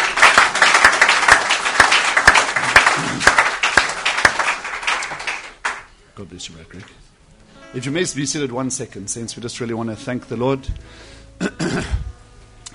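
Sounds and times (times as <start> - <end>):
audience applause: 0.0 - 5.9
speech: 6.4 - 7.0, 7.7 - 11.2.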